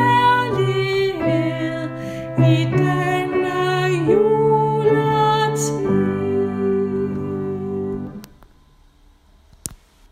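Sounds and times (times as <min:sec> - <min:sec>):
soprano singing a Christmas song: 0:00.0 - 0:08.3.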